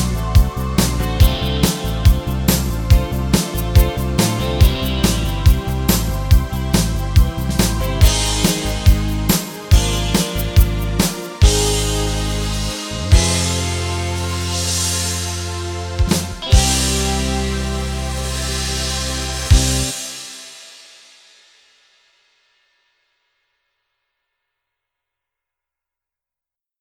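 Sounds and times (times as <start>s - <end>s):
Solina string synthesizer: 0.0s - 20.4s.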